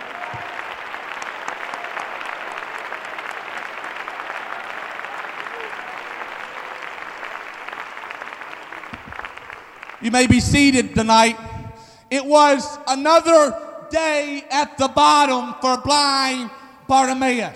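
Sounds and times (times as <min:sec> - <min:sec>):
audience applause and ovation: 0:00.0 - 0:10.3
speech: 0:10.0 - 0:11.5, 0:12.1 - 0:17.5.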